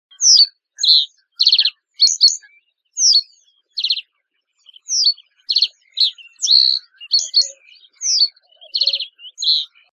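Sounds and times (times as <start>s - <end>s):
common reed bunting calling: 0.1s - 2.4s, 3.0s - 9.9s.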